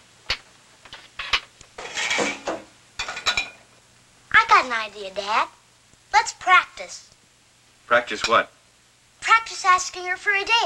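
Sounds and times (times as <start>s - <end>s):
dishes being loaded into a dishwasher: 1.2s - 3.6s
speech: 4.8s - 7.1s, 7.9s - 8.6s, 9.4s - 10.6s.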